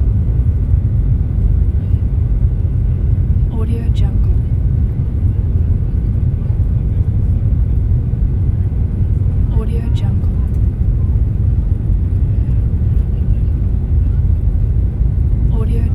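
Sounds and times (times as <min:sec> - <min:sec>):
ambient sound inside a plane taking off: 0:00.0 - 0:15.9.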